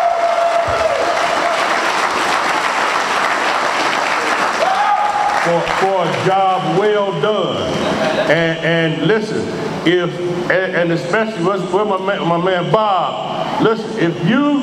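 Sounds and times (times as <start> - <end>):
audience applause: 0.0 - 6.2
speech: 5.5 - 14.6
laughter: 7.6 - 8.6.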